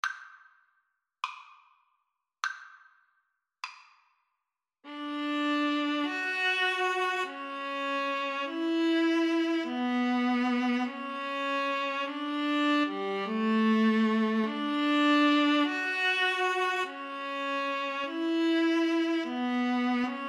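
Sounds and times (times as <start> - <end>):
violas playing a sonata: 4.9 - 20.2.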